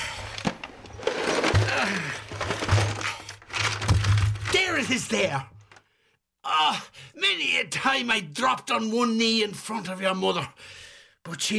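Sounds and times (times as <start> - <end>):
kitchen drawer utensils and odds and ends clattering onto a hard floor: 0.9 - 4.5
speech: 4.9 - 5.5, 7.4 - 11.5.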